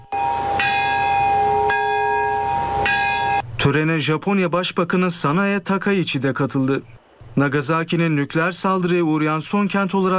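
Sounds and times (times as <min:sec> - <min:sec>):
peace bell ringing at Nagasaki atomic bombing memorial ceremony: 0:00.0 - 0:03.4
speech: 0:03.6 - 0:10.1.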